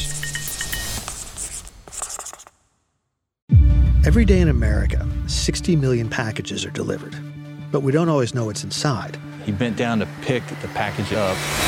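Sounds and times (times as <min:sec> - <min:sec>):
pen scratching on paper: 0:01.0 - 0:02.5
speech: 0:04.0 - 0:11.6.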